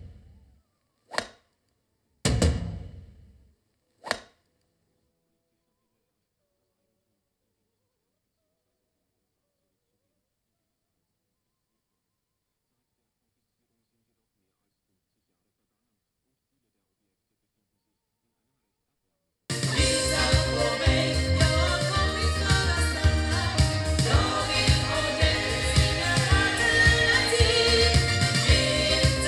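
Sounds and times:
sound through ball loudspeakers: 19.5 - 29.2.

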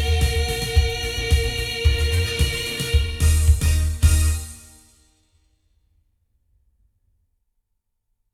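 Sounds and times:
sound from omni loudspeakers recorded with Rode NT2: 0.0 - 4.7.

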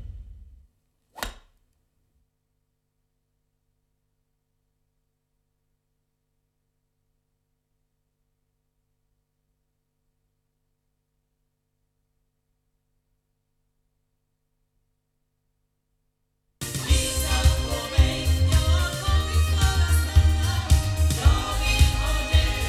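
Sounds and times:
loudspeakers recorded with an Oktava MKL-5000 omni microphone: 16.6 - 22.6.

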